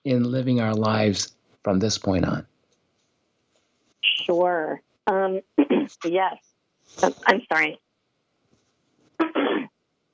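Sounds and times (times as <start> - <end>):
speech: 0.0 - 2.5, 4.2 - 7.8
person clearing throat: 9.2 - 9.7.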